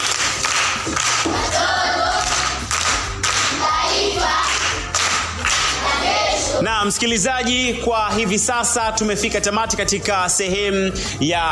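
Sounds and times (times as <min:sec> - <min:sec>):
audience applause for a primary school pupil: 0:00.0 - 0:05.9
speech: 0:06.8 - 0:11.4.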